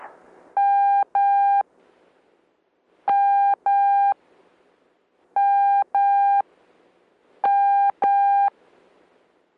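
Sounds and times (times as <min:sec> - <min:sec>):
Morse code tones, letter M: 0:00.6 - 0:01.6, 0:03.1 - 0:04.2, 0:05.4 - 0:06.4, 0:07.4 - 0:08.5.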